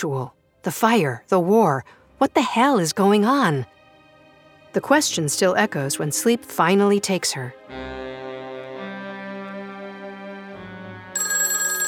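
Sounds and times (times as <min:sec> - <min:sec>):
speech: 0:00.0 - 0:03.8, 0:04.7 - 0:08.0
telephone ringing: 0:11.2 - 0:11.8.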